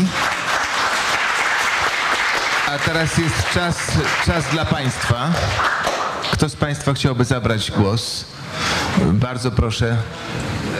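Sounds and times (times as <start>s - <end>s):
audience applause: 0.0s - 6.4s
speech: 2.8s - 10.7s.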